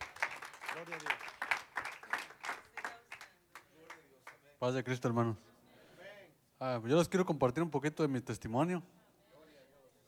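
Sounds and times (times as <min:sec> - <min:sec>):
crowd applause for a church member: 0:00.0 - 0:03.3
speech: 0:00.8 - 0:01.4, 0:04.6 - 0:05.5, 0:06.6 - 0:09.0.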